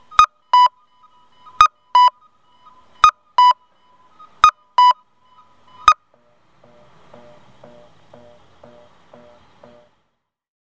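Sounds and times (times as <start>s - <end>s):
cuckoo sound of an acoustic pedestrian crossing signal in Miyoshi Tokushima: 0.0s - 10.0s.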